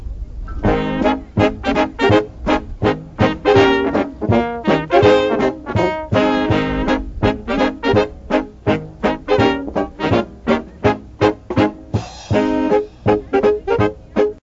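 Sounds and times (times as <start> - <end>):
schottische dance music: 0.6 - 14.4.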